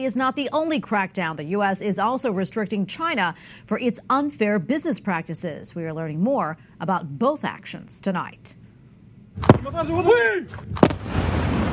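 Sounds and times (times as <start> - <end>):
speech: 0.0 - 8.6, 9.4 - 10.9
heavy explosions from missile and drone attack: 10.6 - 11.7
rumbling wash of noise: 10.6 - 11.7.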